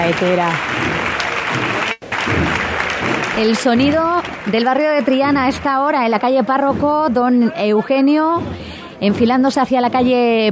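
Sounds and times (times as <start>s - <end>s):
speech: 0.0s - 1.9s, 3.4s - 10.4s
crowd applause in the street: 0.0s - 6.0s.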